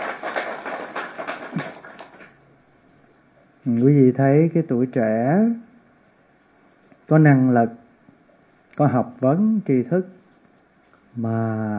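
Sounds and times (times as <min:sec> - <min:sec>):
audience applause: 0:00.0 - 0:02.4
speech: 0:03.6 - 0:05.7, 0:07.1 - 0:07.8, 0:08.8 - 0:10.2, 0:11.2 - 0:11.7.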